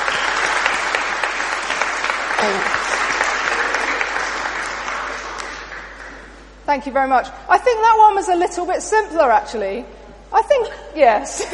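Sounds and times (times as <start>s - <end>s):
audience clapping: 0.0s - 6.6s
speech: 2.4s - 2.8s, 6.7s - 11.5s.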